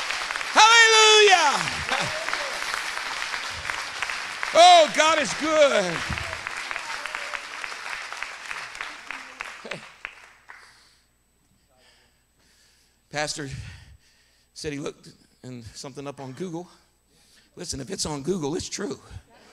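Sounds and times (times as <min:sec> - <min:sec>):
crowd applauding: 0:00.0 - 0:10.8
speech: 0:01.5 - 0:02.2, 0:04.5 - 0:06.2, 0:13.2 - 0:13.8, 0:14.6 - 0:16.8, 0:17.6 - 0:19.3.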